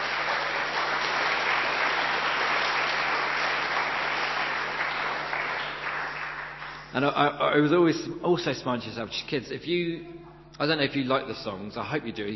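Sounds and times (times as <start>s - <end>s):
audience applause: 0.0s - 6.9s
speech: 6.9s - 12.3s.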